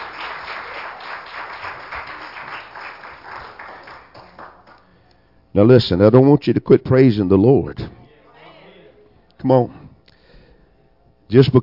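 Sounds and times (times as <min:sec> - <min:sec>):
audience clapping hands in praise: 0:00.0 - 0:04.9
speech: 0:05.5 - 0:08.0, 0:09.4 - 0:09.8, 0:11.3 - 0:11.6.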